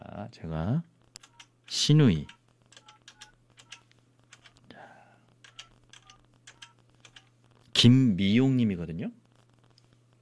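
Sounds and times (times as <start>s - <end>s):
speech: 0.3s - 0.9s, 1.7s - 2.4s, 7.8s - 9.2s
electronic phone keypad beeps dialing: 2.3s - 3.8s, 5.5s - 7.2s.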